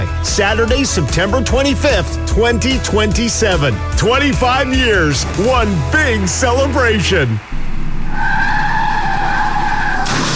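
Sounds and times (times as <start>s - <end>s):
speech: 0.3s - 7.5s
car skidding: 7.4s - 10.3s.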